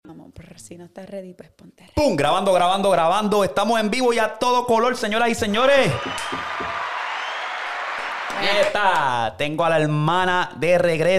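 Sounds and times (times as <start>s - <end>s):
speech: 0.4s - 6.7s, 8.4s - 11.1s
crowd applause: 5.8s - 9.1s.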